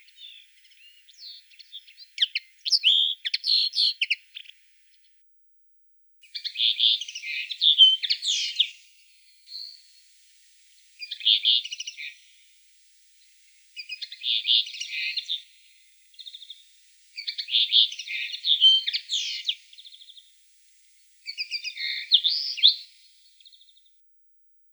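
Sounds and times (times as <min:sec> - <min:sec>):
common linnet calling: 0:00.0 - 0:04.9, 0:06.2 - 0:23.9.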